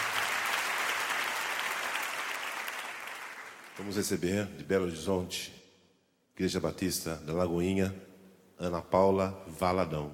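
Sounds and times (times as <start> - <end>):
audience applause: 0.0 - 3.8
speech: 3.8 - 5.6, 6.4 - 10.1.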